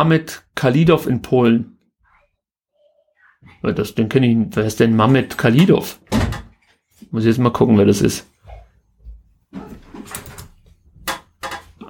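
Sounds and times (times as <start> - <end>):
speech: 0.0 - 1.7, 3.6 - 6.3, 7.1 - 8.3
chair creaking: 9.5 - 11.8.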